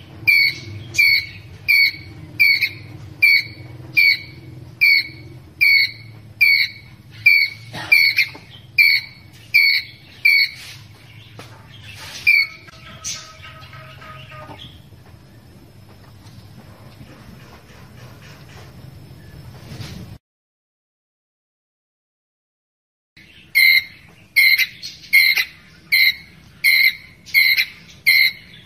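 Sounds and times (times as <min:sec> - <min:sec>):
ground squirrel chirping: 0:00.1 - 0:10.7, 0:12.2 - 0:14.8, 0:23.2 - 0:28.6.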